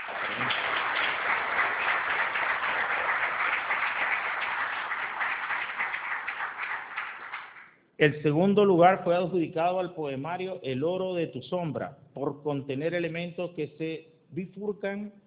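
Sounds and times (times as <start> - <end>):
audience applause: 0.0 - 7.7
speech: 8.0 - 15.2.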